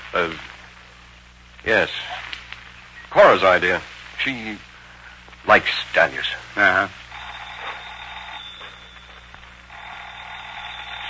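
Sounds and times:
speech: 0:00.1 - 0:00.6, 0:01.6 - 0:02.3, 0:03.1 - 0:04.7, 0:05.4 - 0:07.0
telephone ringing: 0:07.1 - 0:11.0.

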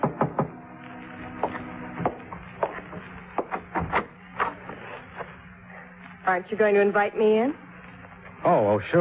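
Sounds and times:
knocks on a door: 0:00.0 - 0:00.6
low steady hum: 0:00.0 - 0:08.9
speech: 0:06.3 - 0:07.6, 0:08.4 - 0:08.9.

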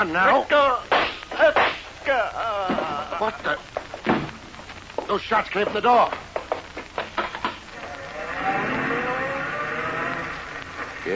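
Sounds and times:
speech: 0:00.0 - 0:03.8, 0:05.1 - 0:06.2
tires squealing: 0:07.7 - 0:11.1
car engine roar speeding off around a corner: 0:07.8 - 0:11.0.

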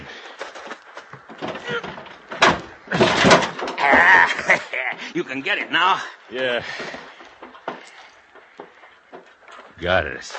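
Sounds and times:
stuck plane baggage compartment door pulled open: 0:00.5 - 0:04.2
laughter: 0:03.8 - 0:07.1
speech: 0:04.5 - 0:07.1, 0:09.8 - 0:10.3.

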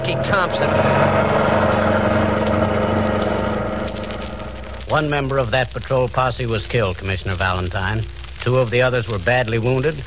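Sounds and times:
getaway car engine revving as it drives off: 0:00.0 - 0:05.5
speech: 0:00.2 - 0:01.0, 0:04.9 - 0:10.0.

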